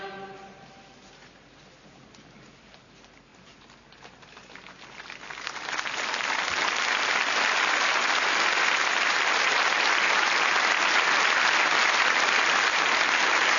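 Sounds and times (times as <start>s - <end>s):
audience applause after mass: 4.2s - 13.5s.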